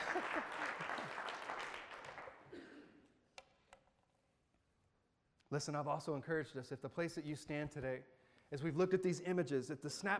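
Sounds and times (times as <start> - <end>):
audience clapping: 0.0 - 2.5
speech: 5.5 - 10.1.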